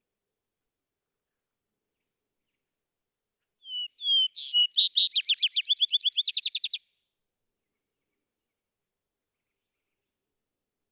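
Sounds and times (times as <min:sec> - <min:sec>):
vesper sparrow whistles and trills: 0:03.7 - 0:06.8.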